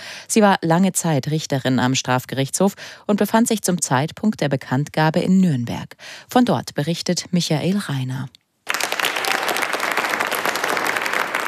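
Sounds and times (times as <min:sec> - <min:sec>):
speech: 0:00.3 - 0:08.4
applause in a courtroom: 0:08.6 - 0:11.4.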